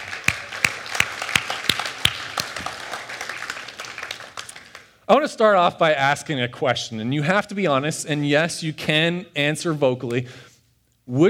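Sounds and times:
audience applause: 0.0 - 4.9
speech: 5.1 - 10.5, 11.1 - 11.2.

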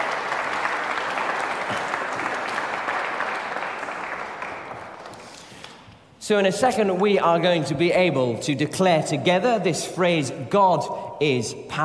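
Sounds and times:
audience applause for volunteers: 0.0 - 5.5
speech: 6.3 - 11.8.

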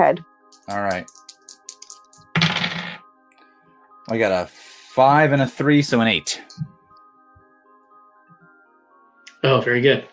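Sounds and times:
speech: 0.0 - 1.2, 4.1 - 6.7, 9.4 - 10.1
dice rattling on a hard surface: 0.5 - 3.0.

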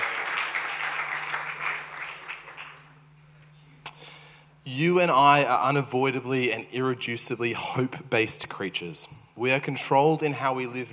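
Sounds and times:
audience clapping: 0.0 - 3.0
speech: 4.7 - 10.9.

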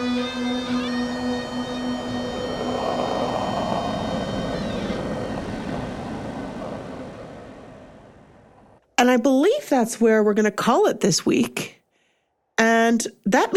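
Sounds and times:
low droning whistle: 0.0 - 8.6
speech: 9.0 - 11.8, 13.0 - 13.5.

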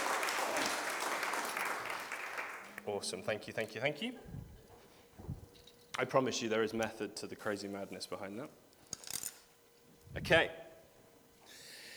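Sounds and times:
audience applause: 0.0 - 3.2
speech: 2.9 - 4.4, 6.0 - 8.6, 10.1 - 10.6.

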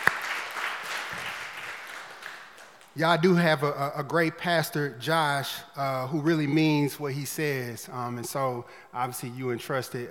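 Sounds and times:
audience clapping in praise: 0.0 - 3.1
speech: 3.0 - 10.0.

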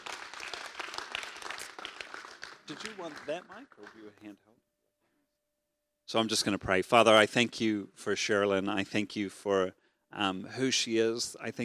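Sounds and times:
audience applause: 0.0 - 4.1
speech: 2.7 - 4.7, 6.1 - 11.6.

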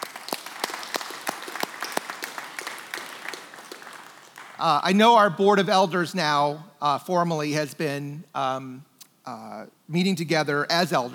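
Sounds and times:
audience applause: 0.0 - 4.8
speech: 4.6 - 11.1.

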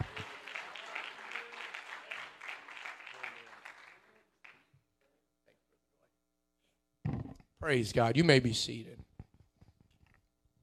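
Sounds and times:
audience hand clapping: 0.0 - 4.7
speech: 7.6 - 9.0.

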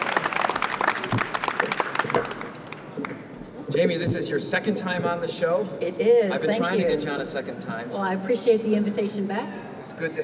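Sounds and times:
studio audience applause welcoming a pastor onto a talk show: 0.0 - 3.2
speech: 3.8 - 10.2.

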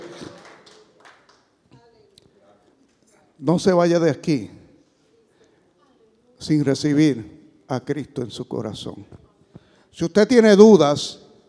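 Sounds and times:
crowd clapping in an echoing room: 0.0 - 1.6
speech: 3.4 - 4.6, 6.4 - 9.2, 10.0 - 11.2.

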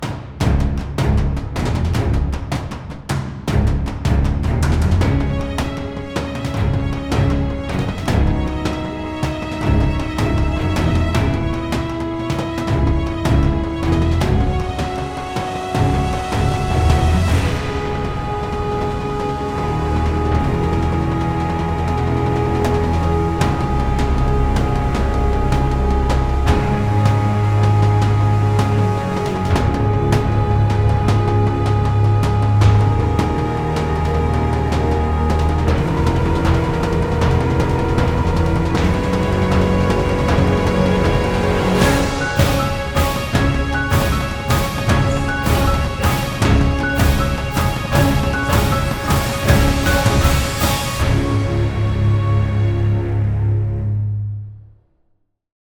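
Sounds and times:
music intro at 156.5 BPM: 0.0 - 54.6.

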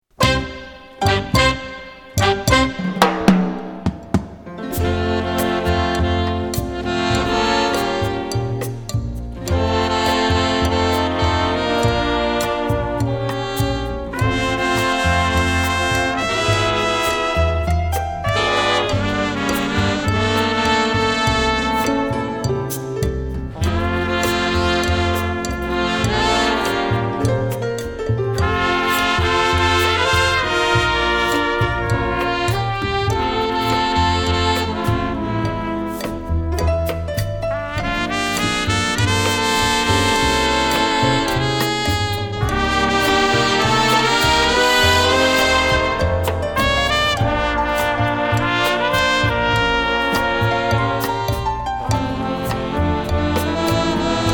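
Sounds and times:
cha cha cha music: 0.0 - 54.3.

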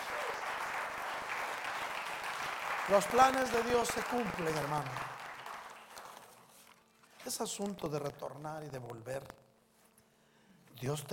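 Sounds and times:
audience applause: 0.0 - 6.4
speech: 2.9 - 5.2, 7.3 - 9.4, 10.8 - 11.1.

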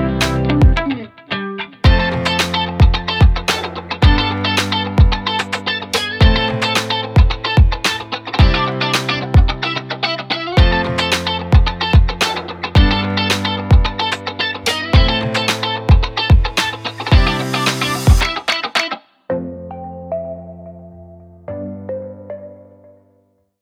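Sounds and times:
upbeat music: 0.0 - 1.0, 1.8 - 18.7.

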